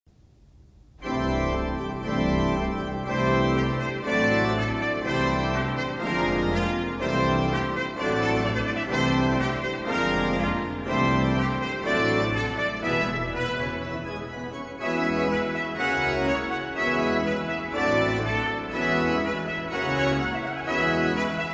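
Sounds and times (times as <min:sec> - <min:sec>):
trumpet: 0:01.0 - 0:21.5.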